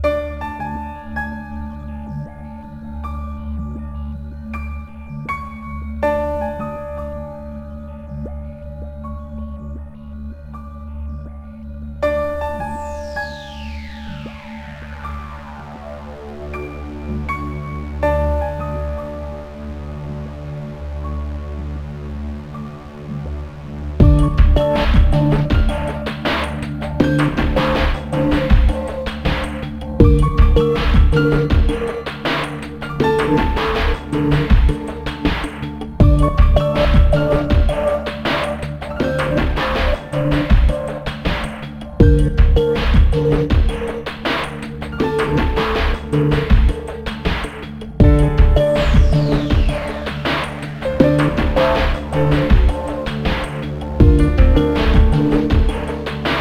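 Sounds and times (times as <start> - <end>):
ambient music: 0.0 - 56.3.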